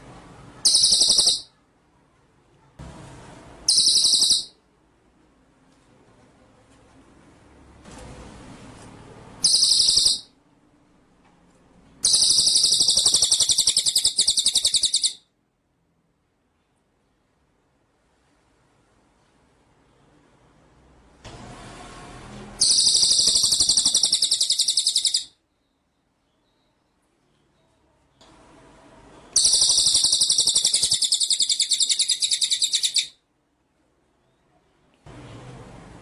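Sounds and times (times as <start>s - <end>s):
white-rumped shama buzzy trilling song: 0.6s - 1.5s, 3.7s - 4.6s, 9.4s - 10.4s, 12.0s - 15.2s, 22.6s - 25.4s, 29.3s - 33.2s.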